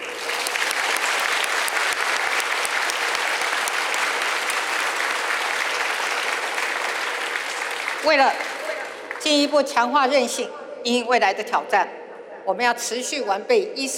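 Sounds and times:
audience applause: 0.0s - 9.2s
speech: 8.0s - 8.5s, 9.2s - 13.9s.

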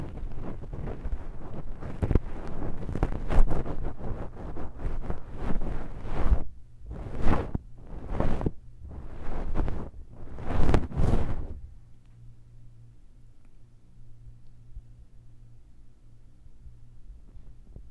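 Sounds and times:
ear cleaning scratching and rubbing: 0.0s - 11.6s
faint low hum: 0.0s - 17.9s.

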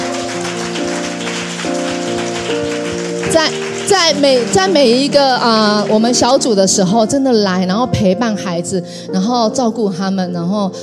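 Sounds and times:
applause: 0.0s - 6.6s
speech: 3.3s - 10.8s.

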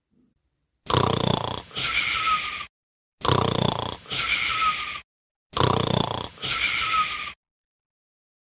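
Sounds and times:
loud thunderous snoring: 0.9s - 2.5s, 3.2s - 7.4s.

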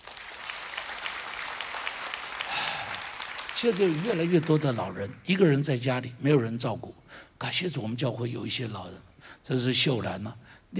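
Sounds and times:
applause: 0.0s - 5.4s
speech: 3.6s - 10.7s.

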